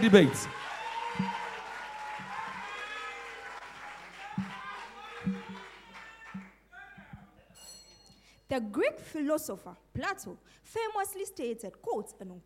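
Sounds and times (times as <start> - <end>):
speech: 0.0 - 0.6, 8.5 - 12.4
audience applause welcoming the principal speaker of a senior high school debate: 0.0 - 6.6.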